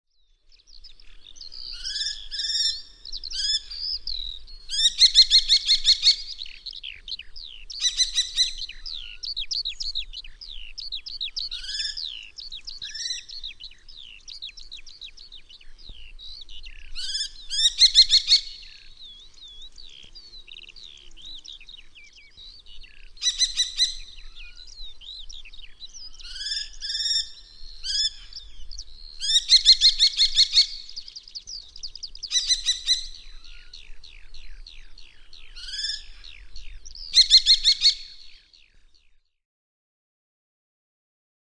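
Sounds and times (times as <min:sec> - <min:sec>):
kestrel calling: 0:04.7 - 0:15.5, 0:16.8 - 0:38.3.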